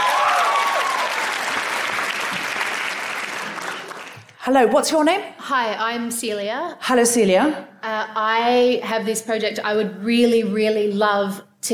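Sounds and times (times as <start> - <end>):
high whistle or cheer: 0.0 - 1.5
audience applause: 0.0 - 4.4
speech: 4.4 - 11.7.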